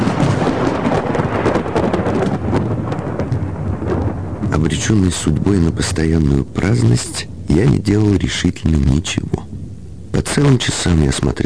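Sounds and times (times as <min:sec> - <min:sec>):
thunderstorm with thunder: 0:00.0 - 0:06.0
speech: 0:04.7 - 0:09.5, 0:10.2 - 0:11.4.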